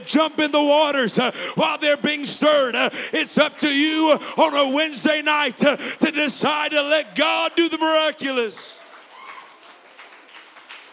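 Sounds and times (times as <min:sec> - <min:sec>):
speech: 0:00.0 - 0:08.8
audience clapping hands: 0:07.3 - 0:10.9.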